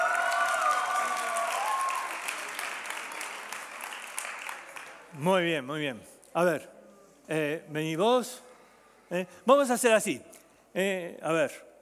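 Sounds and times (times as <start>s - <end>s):
audience applause for the actors: 0.0s - 5.1s
speech: 5.2s - 8.5s, 9.1s - 11.7s.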